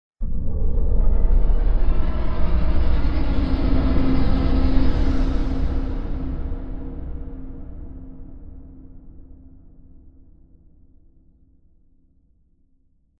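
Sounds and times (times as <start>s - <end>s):
horror music: 0.2s - 9.2s.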